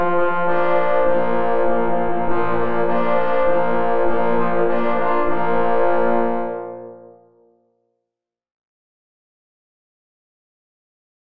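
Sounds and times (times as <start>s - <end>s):
three parforce hunting horns playing a hunting march: 0.0s - 7.2s.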